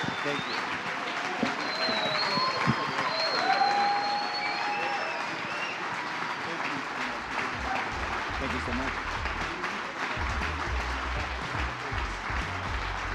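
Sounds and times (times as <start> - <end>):
audience applause: 0.0 - 13.1
speech: 0.2 - 0.7
high whoops and whistles: 1.4 - 5.8.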